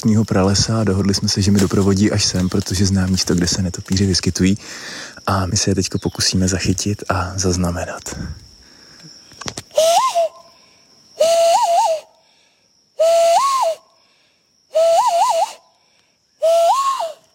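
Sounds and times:
speech: 0.0 - 8.4
steady hiss: 0.0 - 17.3
man whistling to call bats: 9.7 - 10.5, 11.2 - 12.2, 13.0 - 13.9, 14.7 - 15.6, 16.4 - 17.3.

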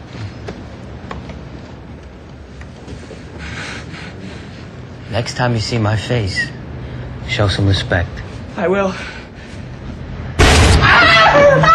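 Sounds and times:
speech: 5.2 - 6.6, 7.3 - 9.2
gunshot: 10.4 - 11.1.

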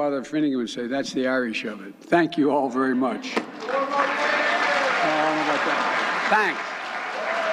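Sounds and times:
speech: 0.0 - 4.3, 5.0 - 6.7
clapping: 3.4 - 7.5
crowd cheering: 3.4 - 7.5.

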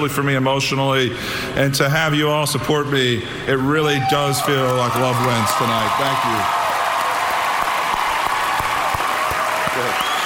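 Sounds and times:
speech: 0.0 - 6.6
audience applause: 4.4 - 10.2.

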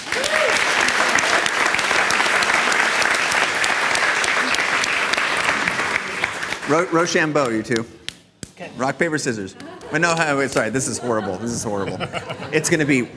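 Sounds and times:
audience applause: 0.0 - 7.4
speech: 6.7 - 8.0, 8.6 - 13.1
laughter: 9.2 - 13.1.

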